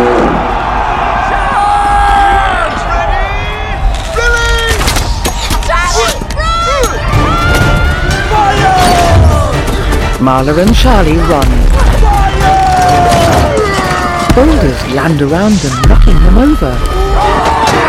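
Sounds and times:
battle horns blaring: 0.0 - 0.7
crowd shouting and whooping: 0.0 - 9.9, 11.0 - 14.8, 15.6 - 17.8
speech: 10.3 - 11.8, 14.4 - 17.0.

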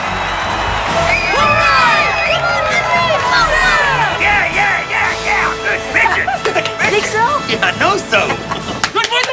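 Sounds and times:
crowd cheering and whooping at a baseball game: 0.0 - 6.5
laughter: 1.3 - 9.2.

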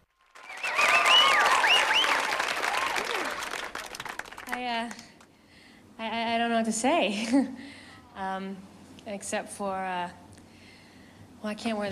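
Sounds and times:
applause: 0.0 - 5.3
speech: 4.7 - 5.1, 6.0 - 10.2, 11.4 - 11.9.

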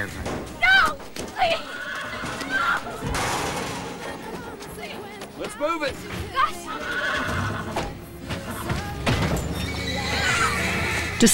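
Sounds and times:
rustling, scuffing noise: 0.0 - 9.7
horse neighing: 1.4 - 3.0, 6.4 - 8.8, 9.4 - 11.3
speech: 5.6 - 7.2.

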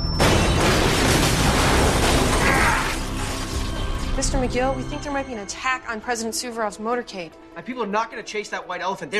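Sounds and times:
remotely detonated bomb explosion: 0.2 - 3.6
speech: 4.3 - 9.1.

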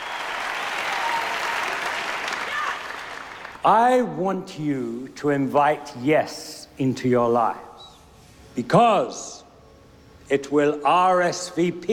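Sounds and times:
audience clapping: 0.0 - 3.6
speech: 3.6 - 7.7, 8.6 - 9.4, 10.3 - 11.9.

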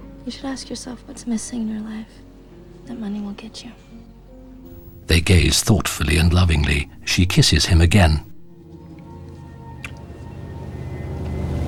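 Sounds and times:
speech: 0.2 - 2.3, 2.9 - 4.0, 5.1 - 8.3
small powerboat motoring gently out of a darkened harbor at night: 9.6 - 11.6.

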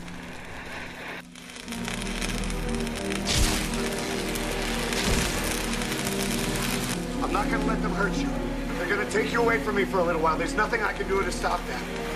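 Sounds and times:
oxyacetylene torch cutting through metal door: 0.0 - 8.2
speech: 7.4 - 12.1.

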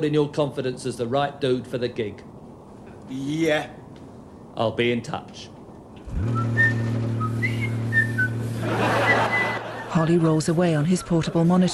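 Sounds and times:
speech: 0.0 - 2.3, 3.1 - 3.8, 4.6 - 5.5, 6.1 - 6.5, 10.0 - 11.7
person whistling a tune: 6.3 - 8.5
laughter: 8.4 - 10.4.

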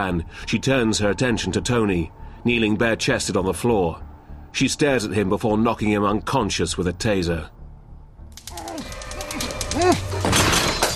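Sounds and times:
speech: 0.0 - 7.6
lamp knocked over and breaking: 10.2 - 10.9.

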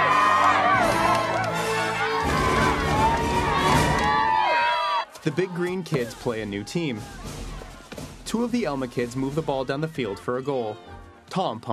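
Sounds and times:
parents cheering and whooping in the bleachers at a kids' soccer goal: 0.0 - 6.0
speech: 5.2 - 7.4, 8.3 - 11.7.

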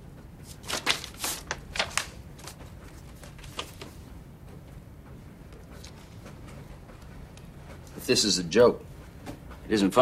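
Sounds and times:
white envelope opened and card drawn out: 0.4 - 4.0
speech: 8.0 - 8.9, 9.7 - 10.0.

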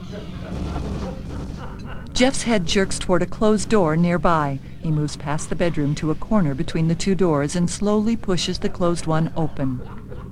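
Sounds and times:
laughter: 0.0 - 2.6
speech: 0.1 - 10.0
video game explosions playing from a TV: 0.4 - 2.2.

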